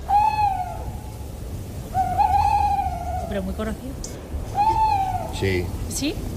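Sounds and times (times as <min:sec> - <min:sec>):
tawny owl hooting: 0:00.0 - 0:03.7, 0:04.5 - 0:05.7
speech: 0:03.3 - 0:04.6, 0:05.3 - 0:06.3.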